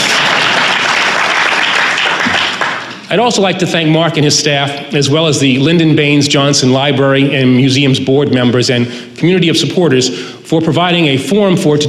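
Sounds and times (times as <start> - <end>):
audience applause: 0.0 - 3.1
speech: 3.1 - 11.8.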